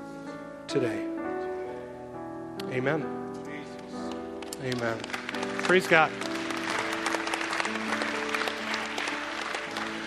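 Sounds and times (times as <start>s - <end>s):
speech: 0.7s - 1.1s, 2.7s - 3.3s, 4.6s - 6.3s
church audience clapping: 3.7s - 10.0s.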